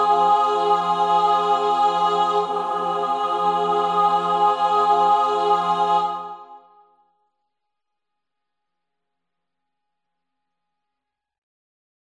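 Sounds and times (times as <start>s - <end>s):
soprano singing: 0.0s - 6.7s.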